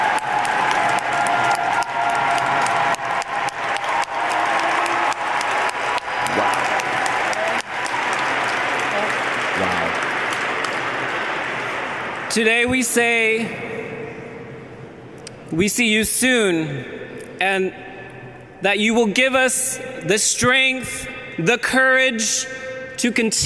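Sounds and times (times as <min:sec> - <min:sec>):
resounding applause: 0:00.0 - 0:12.3
speech: 0:12.4 - 0:13.7, 0:15.5 - 0:17.8, 0:18.6 - 0:23.4.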